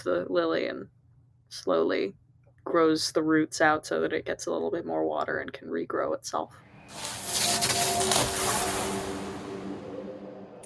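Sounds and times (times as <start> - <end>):
speech: 0.0 - 7.4
faint sustained humming tones: 6.6 - 10.6
magic spell sound effect with hissing whoosh: 6.6 - 10.6.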